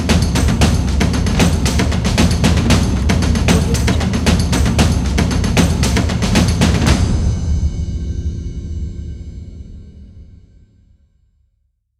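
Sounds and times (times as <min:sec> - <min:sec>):
epic drums opener: 0:00.0 - 0:08.9.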